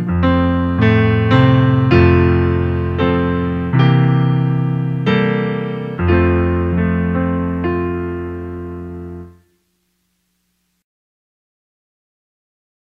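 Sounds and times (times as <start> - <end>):
instrumental music: 0.0 - 10.2.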